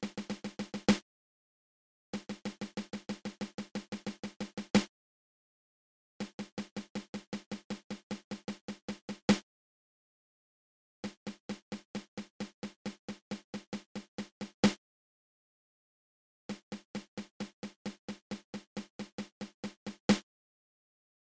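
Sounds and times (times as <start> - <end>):
seventeen stroke drum roll open close open: 0.0 - 1.0, 2.2 - 4.9, 6.2 - 9.4, 11.0 - 14.8, 16.5 - 20.2.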